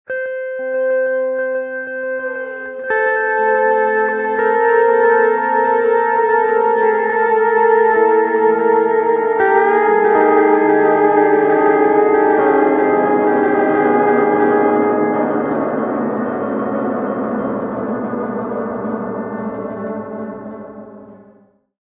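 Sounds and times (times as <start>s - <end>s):
steel guitar in G: 0.1s - 21.5s.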